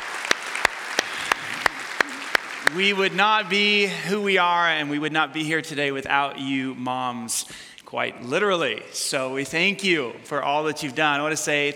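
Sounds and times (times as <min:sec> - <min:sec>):
sharp loud claps: 0:00.0 - 0:03.2
audience applause for mothers at a Mother's Day gathering: 0:00.0 - 0:04.0
speech: 0:02.7 - 0:11.7.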